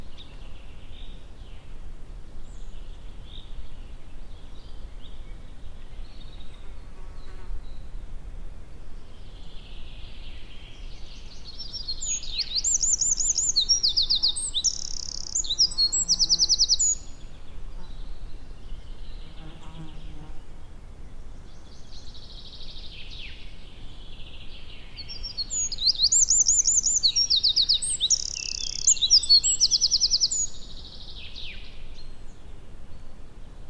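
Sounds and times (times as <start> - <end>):
low background noise: 0.0 - 33.6
Eurasian wren singing: 9.5 - 20.3, 24.1 - 31.7.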